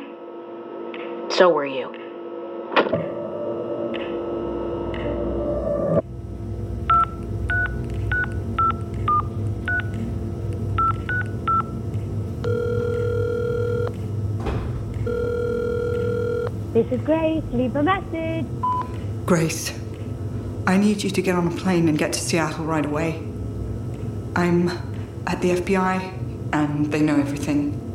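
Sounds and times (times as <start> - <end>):
low hum: 0.0 - 27.9
speech: 1.4 - 2.0, 16.8 - 18.7, 19.3 - 19.8, 20.7 - 23.3, 24.4 - 27.8
long phone ringing tone: 12.4 - 13.9, 15.0 - 16.5.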